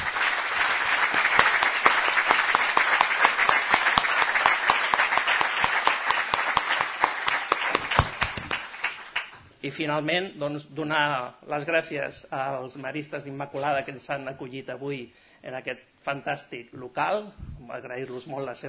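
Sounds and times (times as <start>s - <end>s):
audience applause: 0.0s - 9.4s
speech: 9.6s - 18.6s.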